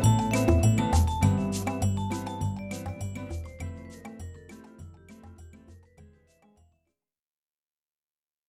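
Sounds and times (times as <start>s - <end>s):
Latin style guitar: 0.0s - 6.6s.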